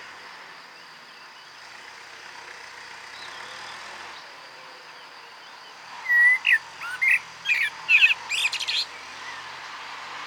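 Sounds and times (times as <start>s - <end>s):
common blackbird singing: 6.1s - 8.9s.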